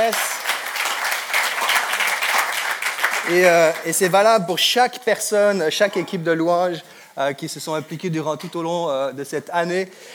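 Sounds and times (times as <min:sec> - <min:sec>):
speech: 0:00.0 - 0:00.3, 0:03.3 - 0:10.1
audience applause: 0:00.0 - 0:04.0.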